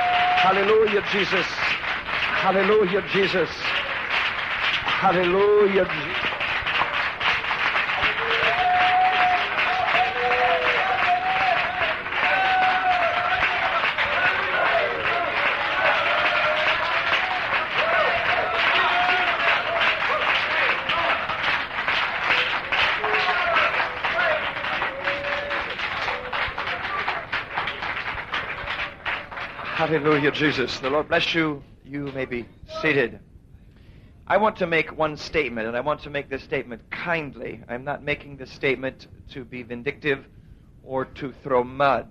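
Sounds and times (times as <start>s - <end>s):
audience clapping: 0.0s - 31.1s
speech: 0.4s - 1.8s, 2.4s - 3.6s, 5.0s - 6.3s, 29.8s - 33.3s, 34.3s - 42.0s.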